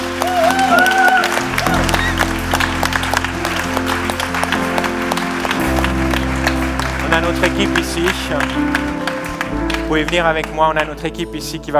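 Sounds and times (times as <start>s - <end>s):
audience applause: 0.0s - 11.3s
speech: 7.5s - 8.9s, 9.9s - 11.7s.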